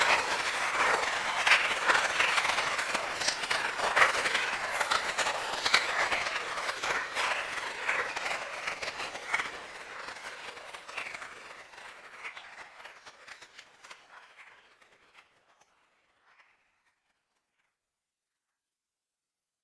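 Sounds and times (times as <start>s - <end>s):
applause: 0.0s - 11.7s.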